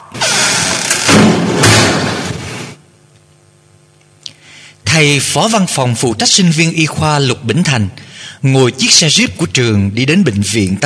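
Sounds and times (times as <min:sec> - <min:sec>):
anatomy lab door flung open: 0:00.2 - 0:02.7
speech: 0:05.0 - 0:10.8.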